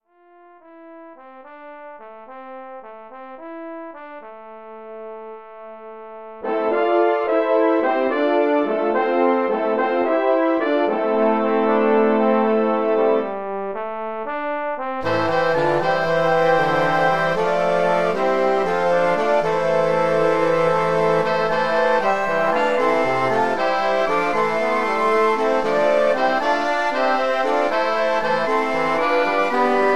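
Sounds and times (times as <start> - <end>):
wind ensemble playing: 6.4 - 14.0, 15.0 - 29.9.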